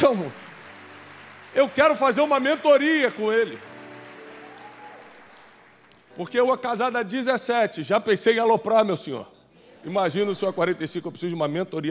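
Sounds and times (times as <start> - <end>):
speech: 0.0 - 0.4, 1.5 - 3.7, 6.2 - 11.9
crowd cheering: 0.0 - 6.0
audience applause: 0.0 - 6.2.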